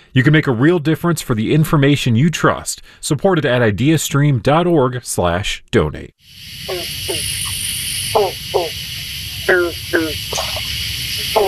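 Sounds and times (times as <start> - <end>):
speech: 0.2 - 7.5
constant high insect buzz: 6.2 - 11.4
frogs croaking at a pond in the Holden Arboretum: 6.3 - 11.4.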